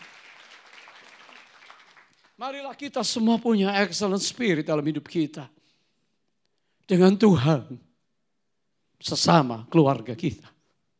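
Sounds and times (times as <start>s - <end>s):
audience applause: 0.0s - 2.5s
speech: 2.4s - 5.6s, 6.9s - 7.9s, 9.0s - 10.5s.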